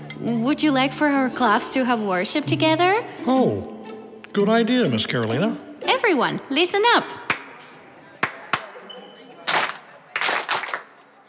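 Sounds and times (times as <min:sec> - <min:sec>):
speech: 0:00.2 - 0:03.8, 0:04.4 - 0:07.2
group hand clap: 0:07.3 - 0:07.6, 0:08.2 - 0:08.8, 0:09.5 - 0:11.0.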